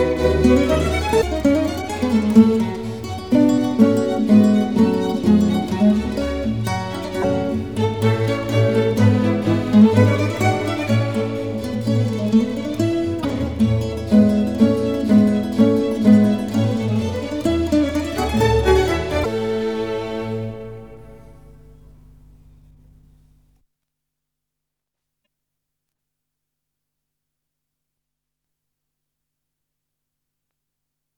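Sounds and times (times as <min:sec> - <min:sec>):
concerto allegro arranged for guitar: 0:00.0 - 0:22.6.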